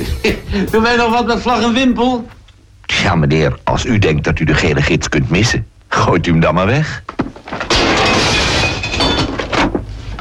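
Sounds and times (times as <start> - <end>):
speech: 0.2 - 2.4, 3.0 - 7.6
glass window pane cracking and shattering: 7.4 - 9.8.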